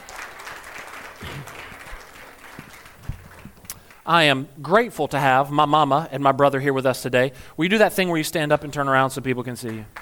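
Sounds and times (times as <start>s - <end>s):
applause: 0.0s - 4.1s, 9.6s - 10.0s
speech: 4.0s - 10.0s.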